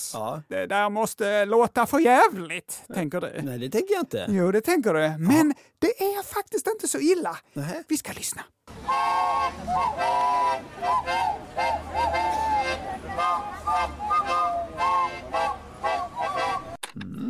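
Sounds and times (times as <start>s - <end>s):
speech: 0.0s - 12.3s
ensemble of clay whistles playing together: 8.8s - 16.8s.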